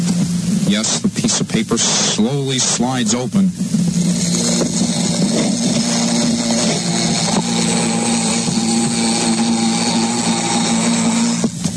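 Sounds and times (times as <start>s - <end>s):
speech: 0.7s - 4.2s
amplified bumblebee buzzing under a microphone: 3.7s - 11.7s.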